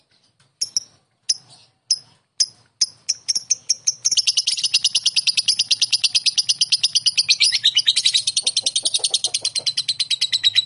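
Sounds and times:
lovebird song: 0.1 - 10.6.

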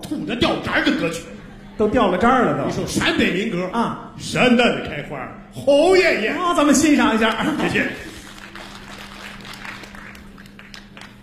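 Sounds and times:
speech: 0.1 - 8.1
laughter: 0.7 - 3.5, 7.0 - 8.6
crowd applause: 7.7 - 11.2.

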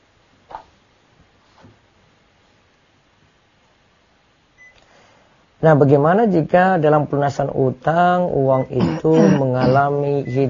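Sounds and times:
steady hiss: 0.0 - 10.4
air conditioner beeping as it is switched on: 4.5 - 4.8, 8.4 - 10.4
speech: 5.6 - 10.4.

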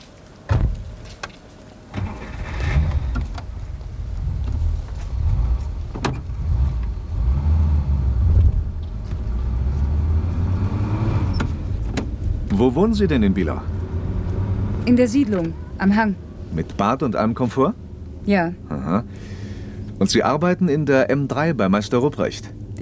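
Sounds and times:
low rumbling car engine heard from the car interior: 0.0 - 22.8
car door thunk: 0.5 - 0.9, 5.9 - 6.3, 11.3 - 12.6
speech: 12.6 - 13.8, 14.9 - 19.3, 20.0 - 22.8.

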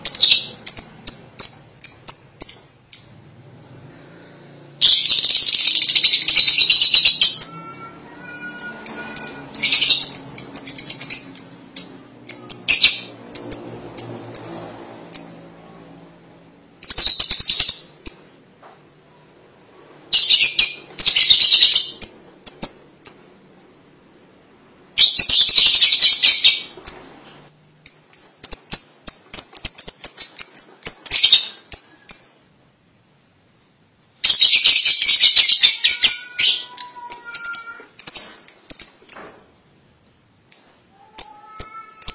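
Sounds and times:
lovebirds chirping and chattering: 0.0 - 3.3, 4.8 - 15.6, 16.8 - 18.4, 20.1 - 23.4, 25.0 - 27.2, 27.8 - 32.5, 34.2 - 39.5, 40.5 - 42.1.

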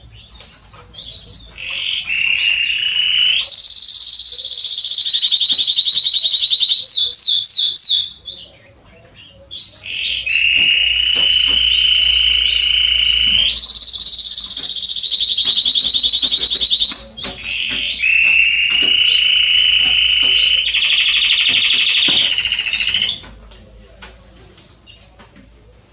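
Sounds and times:
Belgian canary song: 0.0 - 23.4.

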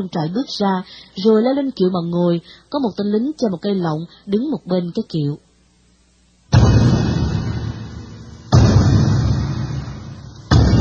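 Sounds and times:
speech: 0.0 - 5.5
war drum booming: 6.5 - 10.7.

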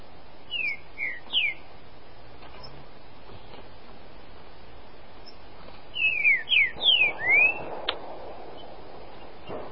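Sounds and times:
Green-winged Saltator song of bright whistled notes: 0.5 - 1.7, 5.2 - 7.8.

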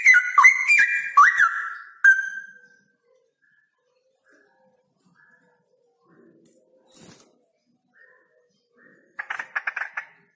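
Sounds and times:
male straw-headed bulbul singing with rolling trills: 0.0 - 10.3.

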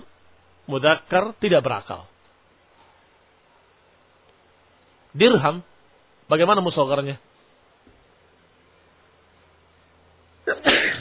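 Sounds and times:
speech: 0.7 - 2.1, 5.2 - 5.7, 6.3 - 7.3
person sneezing: 10.5 - 11.0.

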